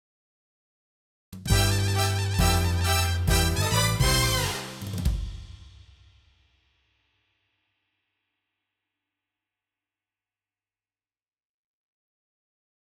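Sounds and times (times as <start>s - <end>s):
triumphal music: 1.5s - 5.6s.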